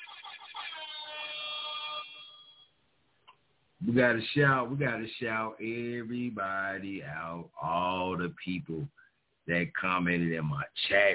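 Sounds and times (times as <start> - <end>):
air horn: 0.6 - 2.6
speech: 3.8 - 11.1.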